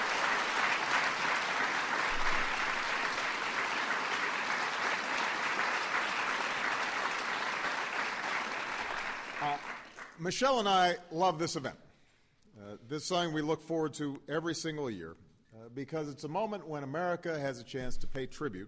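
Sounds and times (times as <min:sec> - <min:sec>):
audience applause: 0:00.0 - 0:10.2
speech: 0:10.2 - 0:11.8, 0:12.9 - 0:18.6.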